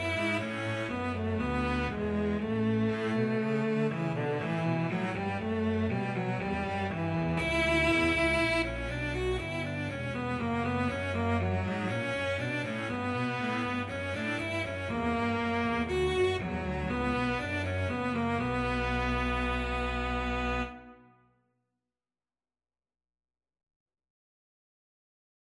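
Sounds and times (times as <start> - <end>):
cello and bass duet: 0.0 - 21.0.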